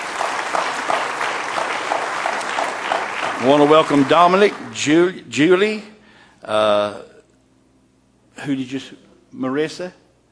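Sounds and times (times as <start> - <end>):
church congregation applauding a visiting guest: 0.0 - 5.7
speech: 3.4 - 7.1, 8.4 - 10.0.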